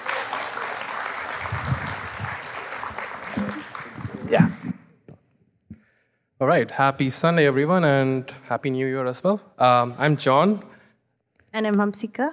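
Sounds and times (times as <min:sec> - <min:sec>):
audience applause welcoming two hosts at a Sunday gathering: 0:00.0 - 0:04.8
speech: 0:06.4 - 0:10.7, 0:11.6 - 0:12.3.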